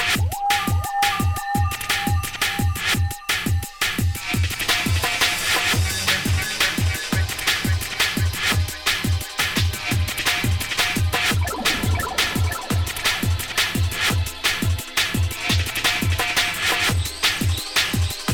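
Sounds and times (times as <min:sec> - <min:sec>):
trap music mix: 0:00.2 - 0:18.3.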